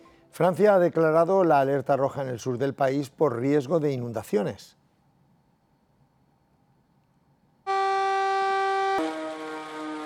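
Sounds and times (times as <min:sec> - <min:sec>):
speech: 0:00.4 - 0:04.8
flood warning sirens alerting the population of Cuisac: 0:07.7 - 0:10.0.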